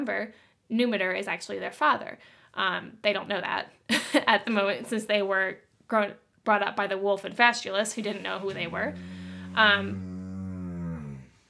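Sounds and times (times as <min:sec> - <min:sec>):
speech: 0:00.0 - 0:10.1
dog groaning: 0:08.1 - 0:11.4.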